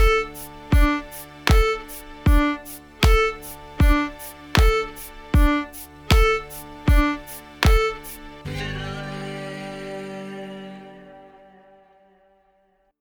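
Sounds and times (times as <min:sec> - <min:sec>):
staccato notes: 0:00.0 - 0:09.2.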